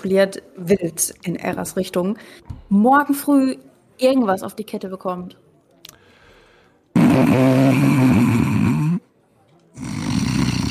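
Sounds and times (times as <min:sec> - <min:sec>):
speech: 0:00.0 - 0:05.4, 0:07.0 - 0:08.1
loud rasping snoring: 0:07.0 - 0:09.0, 0:09.8 - 0:10.6.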